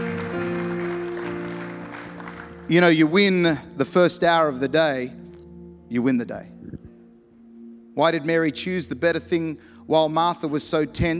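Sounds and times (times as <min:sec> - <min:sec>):
audience applause: 0:00.0 - 0:02.7
sustained low musical tones: 0:00.0 - 0:11.1
speech: 0:02.7 - 0:05.2, 0:05.9 - 0:06.5, 0:08.0 - 0:11.1.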